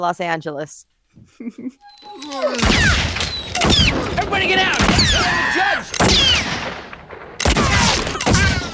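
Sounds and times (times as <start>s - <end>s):
speech: 0.0s - 6.9s
gunshots in a film scene from The Frighteners: 2.6s - 8.7s.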